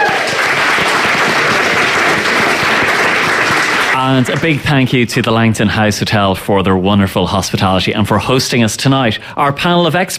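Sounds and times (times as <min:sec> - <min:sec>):
audience round of applause: 0:00.0 - 0:04.7
speech: 0:04.0 - 0:10.1.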